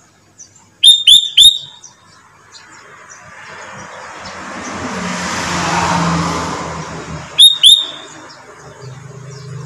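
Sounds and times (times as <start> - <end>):
sooty-headed bulbul whistled notes: 0.8 - 1.8, 7.4 - 8.1.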